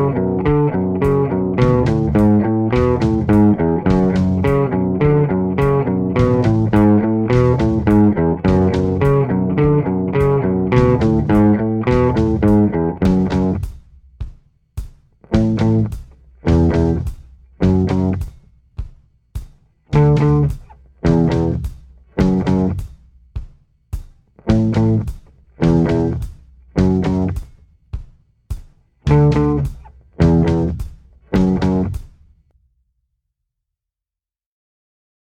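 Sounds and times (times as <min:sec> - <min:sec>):
slow guitar riff: 0:00.0 - 0:13.6, 0:15.3 - 0:18.2, 0:20.0 - 0:21.6, 0:22.2 - 0:22.8, 0:25.6 - 0:26.2, 0:26.8 - 0:27.4, 0:29.1 - 0:30.8, 0:31.4 - 0:32.0.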